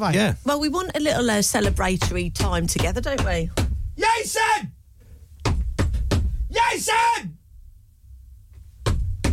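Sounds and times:
speech: 0.0 - 4.8, 6.5 - 7.3
heavy bangs on a floor: 1.6 - 4.0, 5.4 - 6.6, 8.8 - 9.3.

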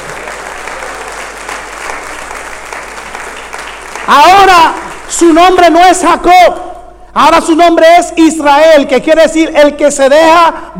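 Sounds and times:
audience applauding: 0.0 - 5.3
speech: 4.1 - 10.7.

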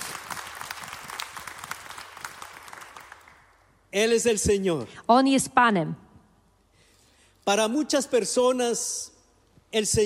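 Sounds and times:
audience applause: 0.0 - 3.5
speech: 3.9 - 6.0, 7.5 - 9.1, 9.7 - 10.0.

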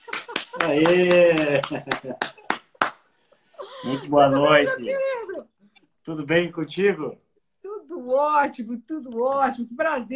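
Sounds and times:
hands clapping: 0.0 - 3.1
speech: 0.6 - 2.4, 3.8 - 7.2, 8.1 - 10.1.

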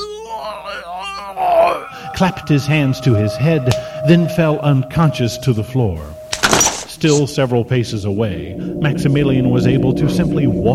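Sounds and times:
man screaming in pain: 0.0 - 3.0
speech: 2.2 - 10.7.

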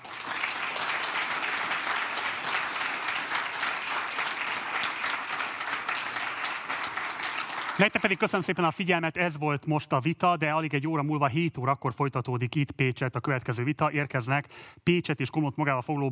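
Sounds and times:
audience applause: 0.0 - 8.6
speech: 7.8 - 16.1.

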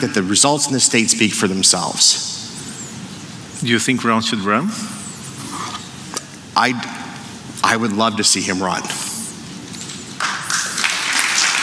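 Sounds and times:
speech: 0.0 - 2.4, 3.6 - 5.0, 6.6 - 7.0, 7.6 - 9.1
tepid applause: 10.2 - 11.6.

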